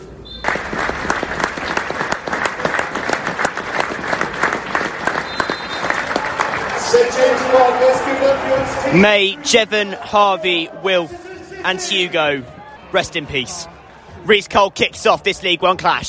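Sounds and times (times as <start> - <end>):
stadium crowd applause at St James's Park: 0.3 - 10.4
speech: 7.2 - 16.0.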